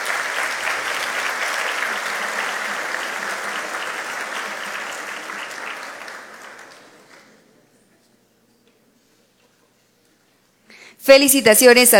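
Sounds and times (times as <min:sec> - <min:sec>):
audience applause: 0:00.0 - 0:07.5
speech: 0:11.1 - 0:11.9.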